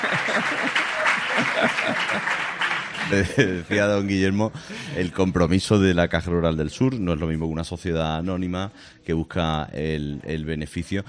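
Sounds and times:
audience applause: 0.0s - 4.2s
laughter: 0.0s - 5.3s
speech: 1.6s - 11.0s.

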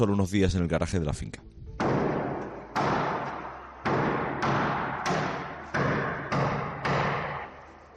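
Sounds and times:
speech: 0.0s - 1.7s
sledgehammer blows striking a garage wall: 1.8s - 7.6s.

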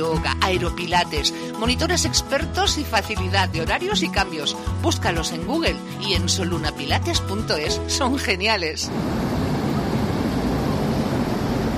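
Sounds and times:
speech: 0.0s - 9.4s
sea waves: 8.9s - 11.7s.

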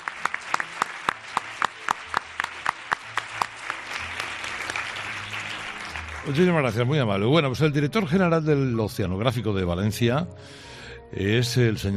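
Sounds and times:
audience applause: 0.0s - 7.3s
speech: 6.2s - 11.9s.

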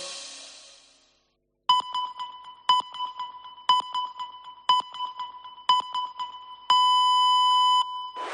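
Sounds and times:
radio time signal beeps: 1.7s - 8.2s.

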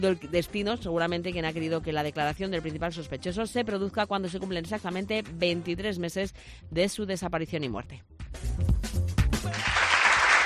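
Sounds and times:
speech: 0.0s - 8.7s
applause sound effect: 9.2s - 10.4s.

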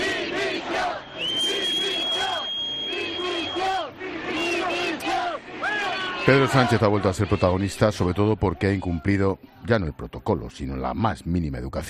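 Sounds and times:
large crowd shouting and booing: 0.0s - 9.4s
long piercing whistle: 0.8s - 4.7s
speech: 6.3s - 11.8s.

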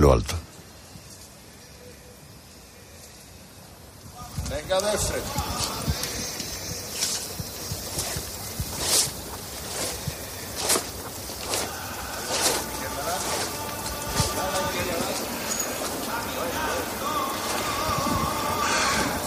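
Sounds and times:
float bearers' slippers shuffling on pavement in the Plaza de la Campana: 4.2s - 19.2s.

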